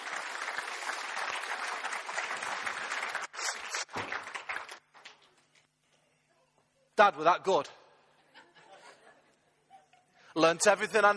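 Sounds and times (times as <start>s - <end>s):
audience clapping: 0.0s - 5.4s
speech: 7.0s - 7.8s, 10.4s - 11.1s
laughter: 8.2s - 10.3s.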